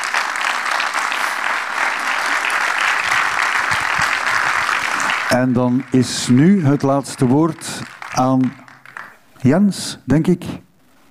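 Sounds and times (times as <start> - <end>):
audience applause: 0.0 - 9.2
speech: 5.3 - 8.6, 9.4 - 10.7.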